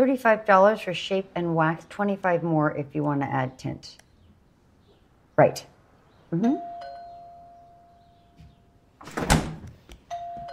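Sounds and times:
speech: 0:00.0 - 0:04.0, 0:05.4 - 0:05.7, 0:06.3 - 0:06.8
refrigerator door opening: 0:09.0 - 0:09.8.

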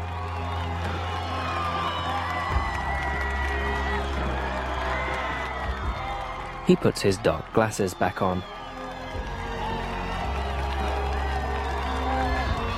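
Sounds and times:
film scene crowd cheering and whooping for a hero: 0:00.0 - 0:12.7
scattered clapping: 0:00.0 - 0:12.7
speech: 0:06.7 - 0:08.6.

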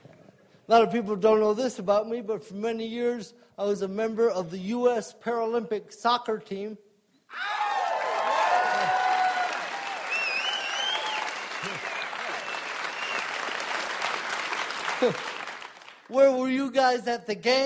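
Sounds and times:
speech: 0:00.7 - 0:07.5, 0:15.0 - 0:15.3, 0:16.1 - 0:17.6
audience clapping: 0:07.6 - 0:16.2.

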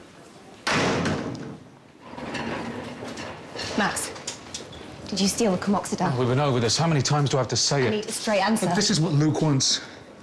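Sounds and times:
door slammed shut: 0:00.6 - 0:01.7
speech: 0:03.8 - 0:04.1, 0:05.1 - 0:09.9.

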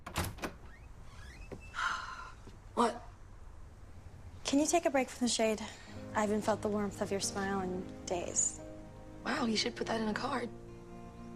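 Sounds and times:
door opening in a lavish home: 0:00.0 - 0:01.9
speech: 0:02.8 - 0:03.0, 0:04.5 - 0:08.6, 0:09.2 - 0:10.6.

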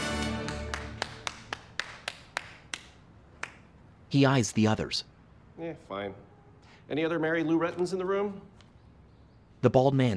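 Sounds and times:
noise: 0:00.0 - 0:10.1
single person clapping: 0:00.4 - 0:03.6
speech: 0:04.1 - 0:08.5, 0:09.6 - 0:10.1.

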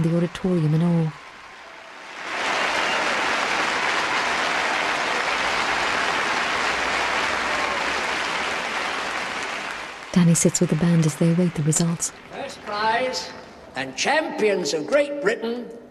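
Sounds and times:
speech: 0:00.0 - 0:01.2, 0:10.2 - 0:15.8
audience cheering and clapping: 0:00.0 - 0:13.2.

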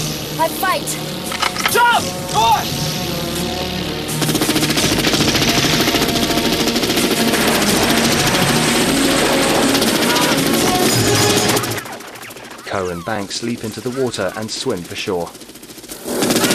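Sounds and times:
speech: 0:00.4 - 0:03.2, 0:12.7 - 0:15.6
machine-gun fire raking a patrol boat: 0:04.1 - 0:16.5.

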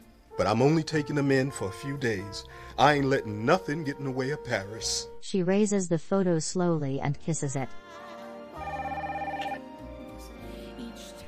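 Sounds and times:
low steady background: 0:00.0 - 0:11.2
speech: 0:00.4 - 0:08.0
telephone ringing: 0:08.6 - 0:09.7.

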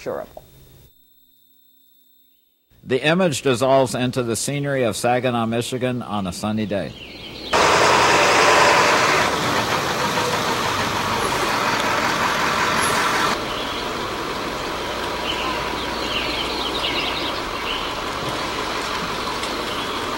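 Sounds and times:
speech: 0:00.0 - 0:00.4, 0:02.8 - 0:07.2
school bus engine running: 0:07.6 - 0:20.1.

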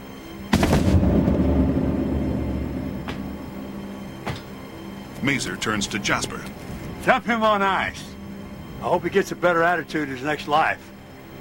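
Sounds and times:
gunshot as a character is shot in the gut: 0:00.5 - 0:04.5
speech: 0:05.2 - 0:08.1, 0:08.8 - 0:10.9.

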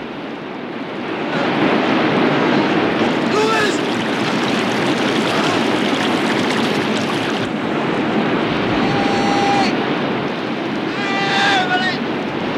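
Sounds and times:
rushing river water at a waterfall: 0:00.1 - 0:12.5
splashing and churning as a kayak and a man tumble down a waterfall: 0:02.6 - 0:08.4.

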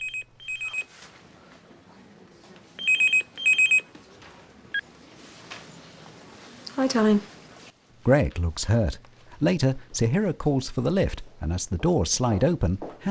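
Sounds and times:
phone ringing with incoming call: 0:00.0 - 0:00.9, 0:02.8 - 0:03.9
speech: 0:06.8 - 0:07.4, 0:08.0 - 0:13.1.

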